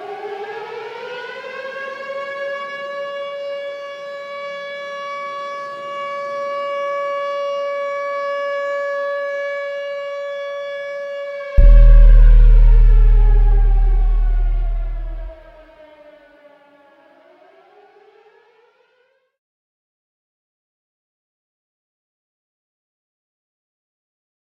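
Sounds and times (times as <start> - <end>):
808 bass: 11.6 - 15.4.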